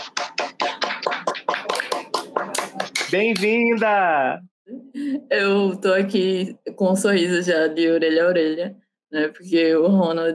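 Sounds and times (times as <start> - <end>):
applause: 0.0 - 3.6
speech: 3.1 - 10.3.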